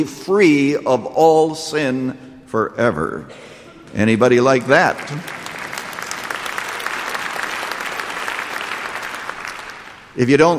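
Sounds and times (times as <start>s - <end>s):
speech: 0.0s - 5.4s, 10.2s - 10.5s
audience clapping: 3.8s - 10.3s.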